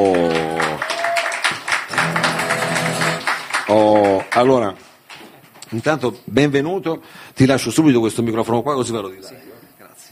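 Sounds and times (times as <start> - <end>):
audience applause: 0.0 - 4.7
loud sustained cheers or whoops: 0.3 - 1.6
speech: 3.7 - 4.9, 5.7 - 9.6.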